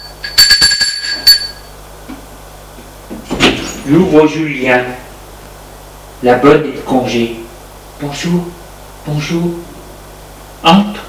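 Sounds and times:
doorbell ringing with a bright metallic tone: 0.0 - 1.7
speech: 3.9 - 5.0, 6.2 - 7.4, 8.0 - 9.7, 10.6 - 11.0.

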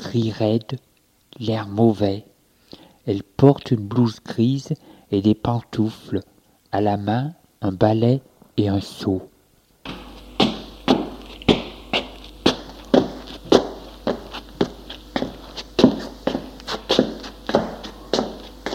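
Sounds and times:
speech: 0.1 - 2.3, 3.1 - 9.3
heavy footsteps walking at a steady pace: 9.8 - 18.7.

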